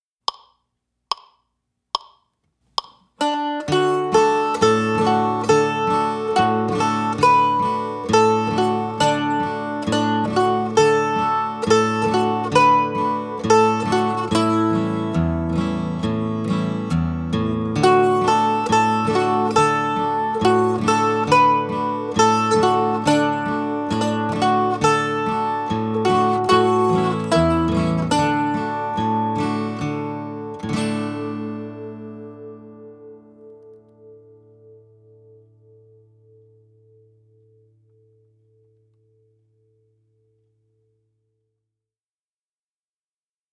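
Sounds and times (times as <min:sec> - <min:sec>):
mandolin: 0:03.2 - 0:37.5.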